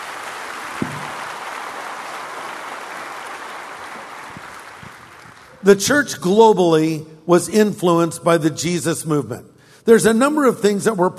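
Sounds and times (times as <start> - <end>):
audience applause: 0.0 - 5.6
speech: 5.6 - 11.1.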